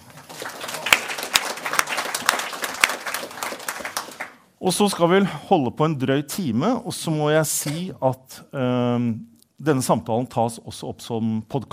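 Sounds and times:
audience applause: 0:00.0 - 0:04.4
speech: 0:04.6 - 0:11.7.

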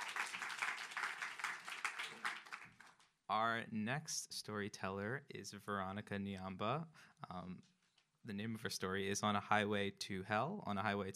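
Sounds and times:
audience applause: 0:00.0 - 0:03.0
speech: 0:03.3 - 0:11.1.

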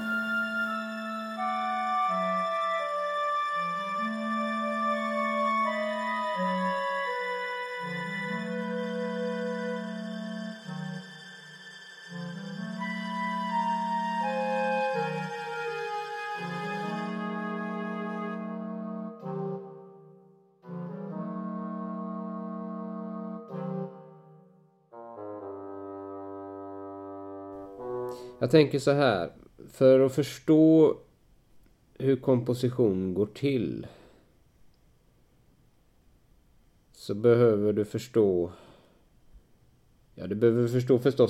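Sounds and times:
recording of a symphony orchestra playing: 0:00.0 - 0:24.4, 0:25.0 - 0:28.6
speech: 0:28.4 - 0:31.0, 0:32.0 - 0:34.0, 0:37.1 - 0:38.7, 0:40.2 - 0:41.2.

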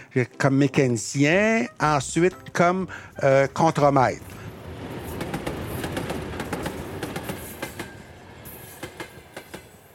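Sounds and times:
speech: 0:00.1 - 0:04.4
locomotive train passing on rails: 0:03.1 - 0:09.9.

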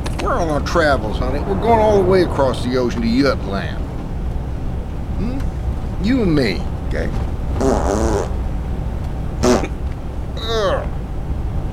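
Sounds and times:
low steady rumble: 0:00.0 - 0:11.7
speech: 0:00.3 - 0:03.8, 0:06.0 - 0:07.3, 0:07.9 - 0:08.3
farting: 0:07.6 - 0:08.4, 0:09.4 - 0:11.0.

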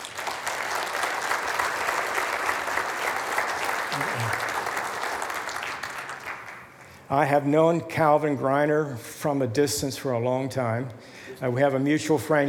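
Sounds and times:
church congregation applauding to welcome a guest: 0:00.0 - 0:07.1
speech: 0:07.1 - 0:12.4.

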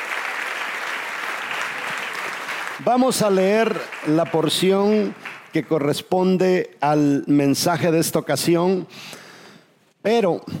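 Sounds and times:
applause: 0:00.0 - 0:06.0
speech: 0:02.8 - 0:09.2, 0:10.0 - 0:10.5.

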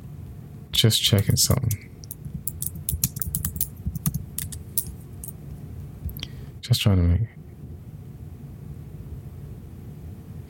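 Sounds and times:
low hum: 0:00.0 - 0:10.4
speech: 0:00.7 - 0:01.9, 0:06.8 - 0:07.4
typing on a computer keyboard: 0:01.7 - 0:04.9.

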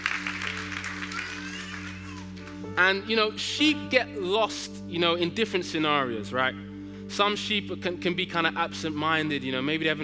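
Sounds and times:
audience clapping: 0:00.0 - 0:02.7
speech: 0:02.8 - 0:10.0.

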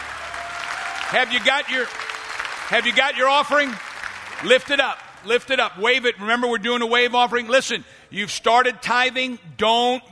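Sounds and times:
audience clapping: 0:00.0 - 0:05.8
speech: 0:01.1 - 0:02.0, 0:02.7 - 0:03.8, 0:04.4 - 0:10.1.

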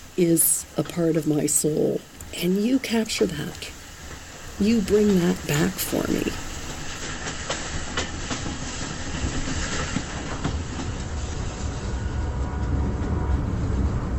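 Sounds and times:
train wheels clattering on rails: 0:00.0 - 0:14.1
speech: 0:00.2 - 0:03.8, 0:04.6 - 0:06.5.

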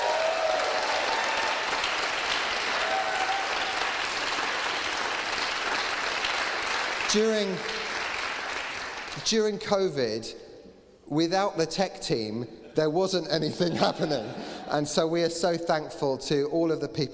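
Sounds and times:
audience cheering and applause: 0:00.0 - 0:09.1
speech: 0:07.1 - 0:07.8, 0:09.2 - 0:10.4, 0:11.1 - 0:17.1
laughter: 0:13.4 - 0:14.9.

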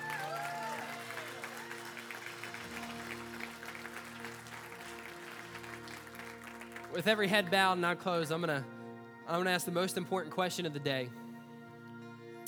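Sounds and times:
audience applause: 0:00.0 - 0:08.5
speech: 0:07.0 - 0:08.7, 0:09.3 - 0:11.2.

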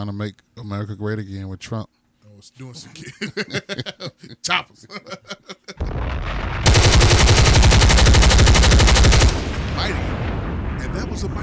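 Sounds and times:
speech: 0:00.0 - 0:05.6, 0:09.8 - 0:10.2, 0:10.8 - 0:11.4
laughter: 0:02.8 - 0:05.8
pistol gunshots: 0:06.6 - 0:09.9.

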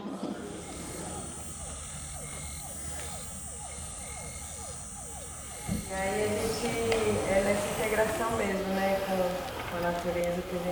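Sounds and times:
frogs croaking: 0:00.0 - 0:10.6
speech: 0:05.9 - 0:10.6.

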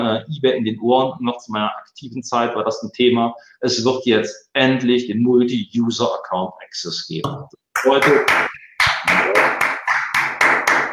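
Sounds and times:
speech: 0:00.1 - 0:09.6
person clapping: 0:07.8 - 0:10.9.

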